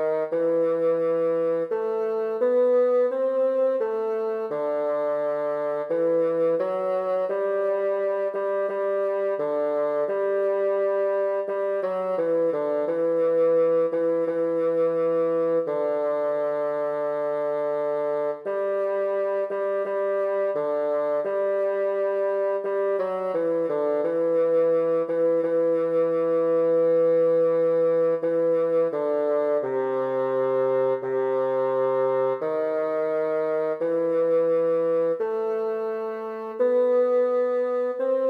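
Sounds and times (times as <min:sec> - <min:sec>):
bassoon playing a slow foxtrot: 0:00.0 - 0:38.2.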